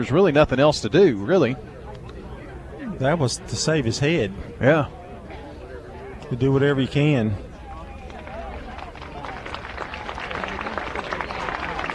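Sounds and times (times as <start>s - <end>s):
speech: 0.0s - 1.8s, 3.0s - 5.0s, 6.3s - 7.5s
stadium crowd applause: 7.6s - 11.9s.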